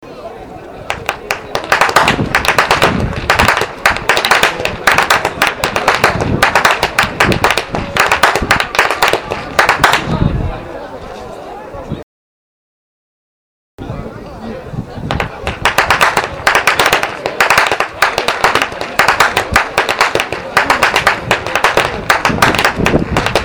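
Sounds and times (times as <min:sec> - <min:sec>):
youth whip cracking: 0:00.9 - 0:10.2, 0:15.1 - 0:23.4.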